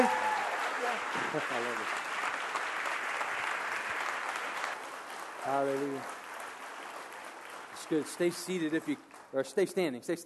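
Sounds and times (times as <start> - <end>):
church audience standing applause: 0.0 - 9.6
speech: 1.1 - 2.0, 5.5 - 6.2, 7.9 - 10.2.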